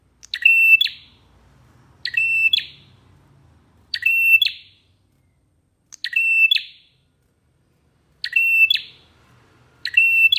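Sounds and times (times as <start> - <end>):
prinia singing a repeated short phrase: 0.2 - 1.2, 2.0 - 2.9, 3.9 - 4.8, 6.0 - 6.9, 8.2 - 9.0, 9.8 - 10.3.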